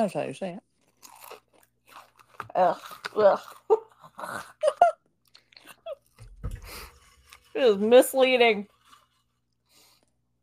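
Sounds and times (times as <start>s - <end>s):
speech: 0.0s - 1.2s, 2.6s - 3.6s, 4.2s - 4.9s, 7.6s - 8.7s
crunching sour cream and onion potato chips: 0.8s - 4.7s.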